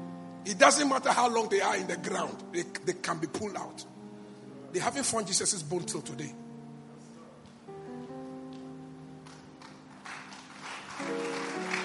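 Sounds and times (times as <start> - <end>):
sustained keyboard chords: 0.0 - 11.8
speech: 0.4 - 4.0, 4.7 - 6.5
weak audience clapping: 8.6 - 11.8.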